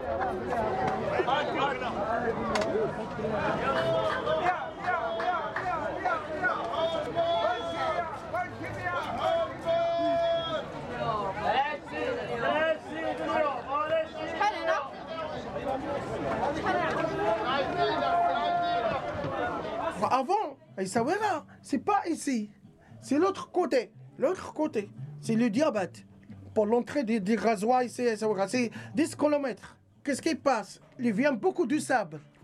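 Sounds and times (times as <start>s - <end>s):
voices chattering and calling out in Essaouira Morocco: 0.0s - 23.0s
crowd hubbub: 0.0s - 32.4s
speech: 0.4s - 4.7s, 20.0s - 32.3s.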